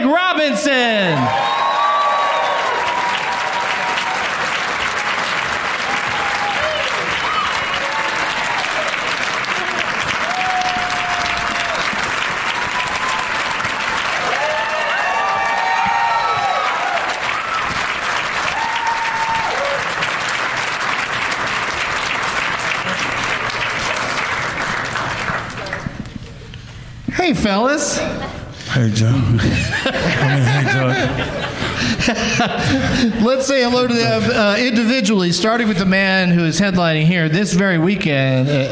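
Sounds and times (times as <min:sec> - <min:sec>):
speech: 0:00.4 - 0:01.5, 0:27.4 - 0:38.6
talk show studio audience applauding: 0:00.9 - 0:26.4
laughter: 0:29.2 - 0:34.4, 0:38.3 - 0:38.6.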